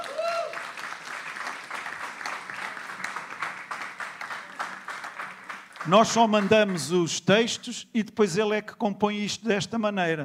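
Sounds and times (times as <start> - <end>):
audience applause: 0.0 - 7.1
speech: 5.8 - 10.2.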